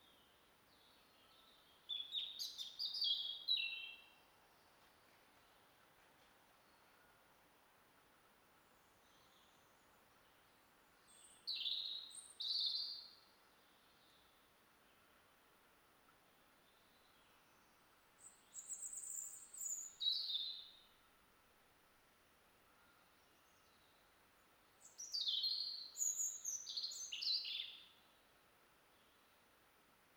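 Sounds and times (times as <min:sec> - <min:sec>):
background hiss: 0:00.0 - 0:30.1
European robin singing: 0:00.8 - 0:04.2, 0:11.0 - 0:14.3, 0:16.7 - 0:20.9, 0:24.8 - 0:28.0.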